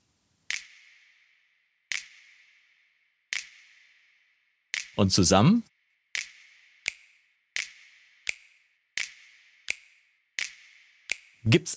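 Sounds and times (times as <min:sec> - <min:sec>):
speech: 0:05.0 - 0:05.7, 0:11.5 - 0:11.7
finger snap with reverb send: 0:07.6 - 0:11.4.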